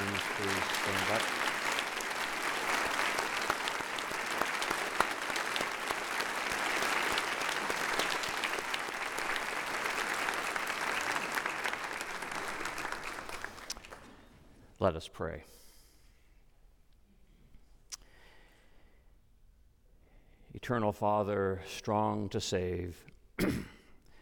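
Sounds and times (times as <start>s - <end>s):
crowd round of applause for veterans: 0.0s - 14.4s
speech: 14.8s - 15.6s, 20.7s - 23.6s.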